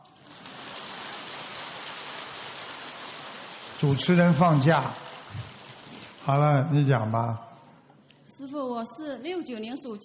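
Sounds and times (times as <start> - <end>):
applause: 0.0 - 6.3
speech: 3.8 - 5.5, 6.3 - 7.5, 8.4 - 10.0.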